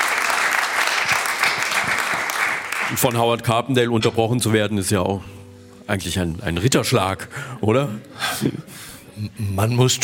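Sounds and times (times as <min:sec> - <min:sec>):
audience applause for two performers on a music show: 0:00.0 - 0:03.2
speech: 0:02.9 - 0:10.0.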